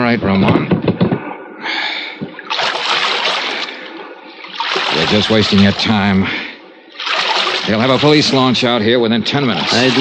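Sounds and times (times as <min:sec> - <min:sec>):
speech: 0:00.1 - 0:00.8, 0:05.1 - 0:06.4, 0:07.7 - 0:09.9
boat paddle stroking through water on a bay: 0:02.3 - 0:06.1, 0:06.9 - 0:08.6, 0:09.4 - 0:09.9.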